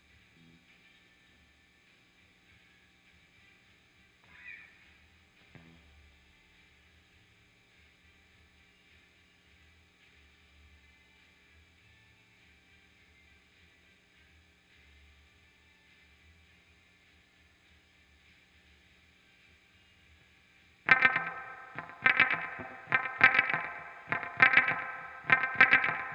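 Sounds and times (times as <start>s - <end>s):
guitar volume swell: 20.9s - 26.1s.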